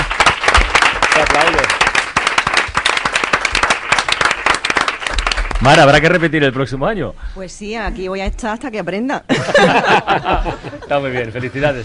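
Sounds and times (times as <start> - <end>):
audience applause: 0.0 - 6.2
speech: 5.6 - 11.8
laughter: 9.3 - 11.8.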